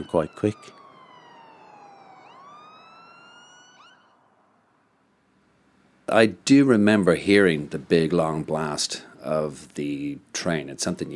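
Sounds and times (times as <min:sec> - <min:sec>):
speech: 0:00.0 - 0:00.8, 0:06.1 - 0:11.1
emergency vehicle siren wailing: 0:00.0 - 0:04.7.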